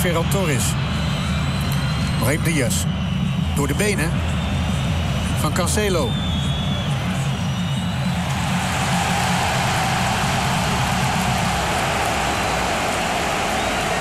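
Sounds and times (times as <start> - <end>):
speech: 0.0 - 1.0, 2.2 - 4.4, 5.4 - 6.3
crowd applauding: 0.0 - 13.9.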